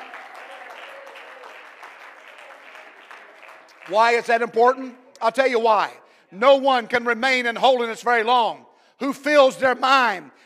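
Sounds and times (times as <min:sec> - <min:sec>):
audience clapping hands: 0:00.0 - 0:04.9
speech: 0:03.9 - 0:10.4.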